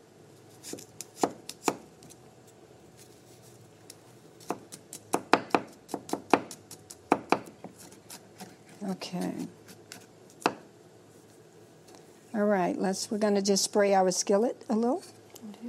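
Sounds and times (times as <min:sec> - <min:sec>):
knife chopping garlic on a cutting board: 0:00.6 - 0:01.8, 0:04.4 - 0:08.6, 0:09.2 - 0:10.7
speech: 0:00.7 - 0:01.0, 0:08.9 - 0:09.6, 0:12.4 - 0:15.2.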